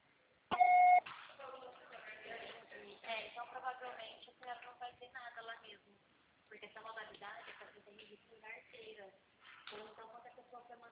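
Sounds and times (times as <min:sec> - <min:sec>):
answering machine beep: 0:00.5 - 0:01.0
people talking: 0:01.4 - 0:10.9.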